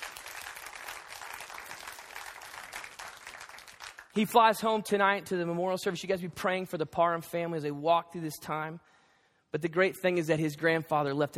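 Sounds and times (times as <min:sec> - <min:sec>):
audience clapping: 0:00.0 - 0:04.4
speech: 0:04.2 - 0:08.9, 0:09.5 - 0:11.3.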